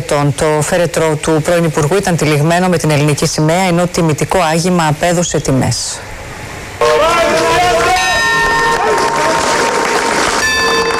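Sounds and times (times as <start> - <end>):
speech: 0.1 - 6.1
warm prolonged applause at funeral: 6.8 - 10.9.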